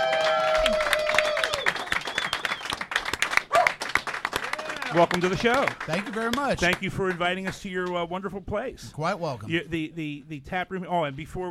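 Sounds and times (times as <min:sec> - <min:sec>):
audience clapping at a live taproom show: 0:00.0 - 0:08.0
speech: 0:04.9 - 0:11.4.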